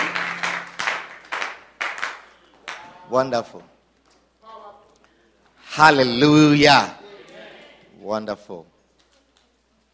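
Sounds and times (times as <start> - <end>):
audience clapping: 0.0 - 3.0
speech: 3.1 - 3.7, 5.8 - 7.0, 8.0 - 8.7.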